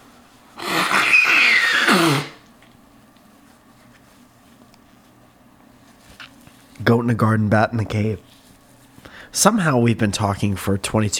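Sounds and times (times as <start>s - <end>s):
person blowing nose: 0.6s - 2.4s
speech: 7.0s - 8.4s, 9.3s - 11.1s.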